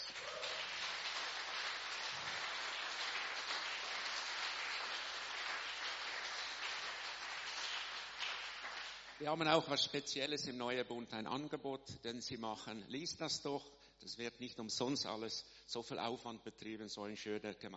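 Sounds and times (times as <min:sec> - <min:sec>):
audience applause: 0:00.0 - 0:09.2
speech: 0:09.2 - 0:17.7.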